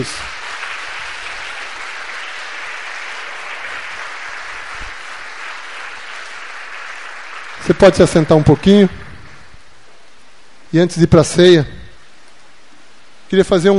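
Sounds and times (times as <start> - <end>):
speech: 0.0 - 0.3, 7.7 - 9.0, 10.7 - 11.8, 13.3 - 13.7
audience applauding: 0.0 - 9.4.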